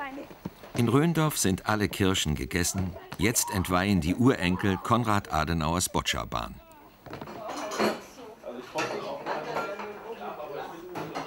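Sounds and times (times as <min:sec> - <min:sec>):
speech: 0:00.1 - 0:07.2
murmured voices: 0:01.4 - 0:11.2
dishes and cutlery clinking in a sink, washed by hand: 0:07.3 - 0:08.1, 0:08.7 - 0:10.0, 0:10.9 - 0:11.2.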